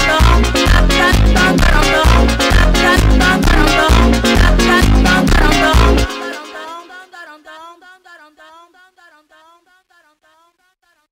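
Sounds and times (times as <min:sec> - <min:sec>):
phonk montagem music: 0:00.0 - 0:07.6.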